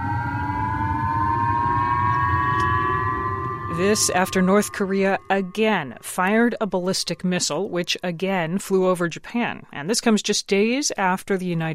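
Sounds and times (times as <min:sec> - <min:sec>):
air raid warning sirens in Hokkaido: 0:00.0 - 0:08.0
speech: 0:03.8 - 0:11.7.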